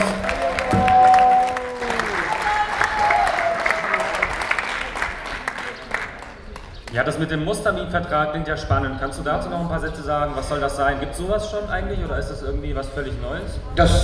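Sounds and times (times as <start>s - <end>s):
audience applause: 0.0s - 7.0s
speech: 7.0s - 14.0s.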